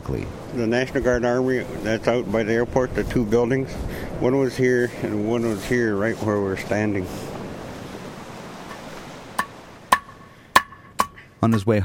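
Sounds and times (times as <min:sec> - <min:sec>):
surf: 0:00.0 - 0:11.8
wind: 0:00.0 - 0:11.8
speech: 0:00.1 - 0:07.3, 0:11.4 - 0:11.8
hammer strikes on a seal hook: 0:09.4 - 0:11.6.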